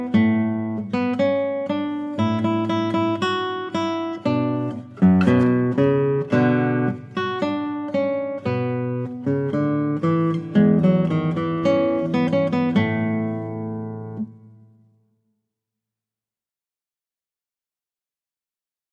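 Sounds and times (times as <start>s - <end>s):
classical guitar playing a habanera: 0.0s - 15.0s.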